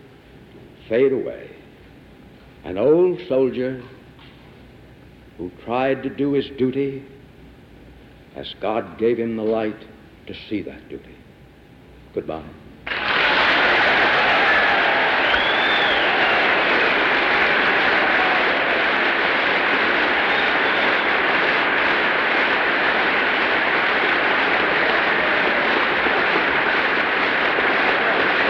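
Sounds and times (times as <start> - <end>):
speech: 0.9 - 1.6, 2.6 - 4.0, 5.4 - 7.2, 8.4 - 11.2, 12.2 - 12.6
audience applause after a speech: 12.9 - 28.4.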